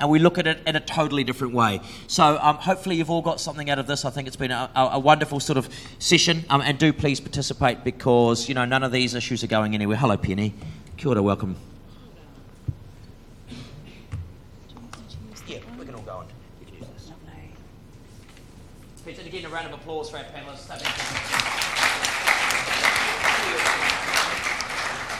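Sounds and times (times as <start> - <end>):
speech: 0.0 - 11.7
audience applause for a panel: 20.8 - 25.1.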